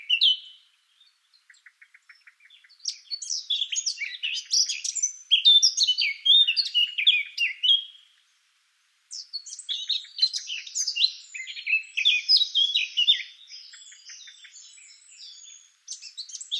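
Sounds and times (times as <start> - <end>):
Eurasian blackcap Sylvia atricapilla singing: 0.0 - 8.1, 9.1 - 16.5.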